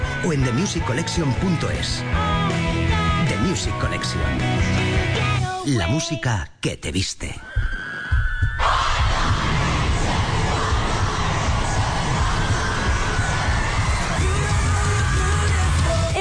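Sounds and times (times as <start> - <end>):
speech: 0.2 - 2.6, 3.5 - 7.7
crowd of fans screaming a pop group's name: 7.5 - 16.2.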